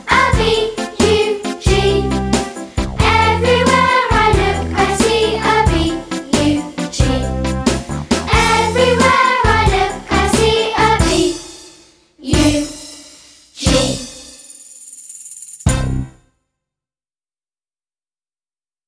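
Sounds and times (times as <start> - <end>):
vocals: 0.0 - 11.6, 12.2 - 12.8, 13.6 - 14.4.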